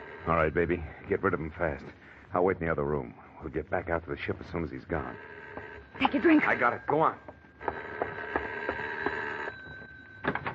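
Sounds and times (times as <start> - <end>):
speech: 0.2 - 7.8
doorbell ringing persistently: 5.0 - 10.5.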